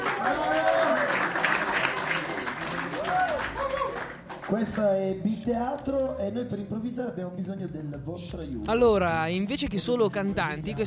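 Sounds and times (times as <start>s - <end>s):
audience applause: 0.0s - 4.7s
speech: 4.5s - 10.8s.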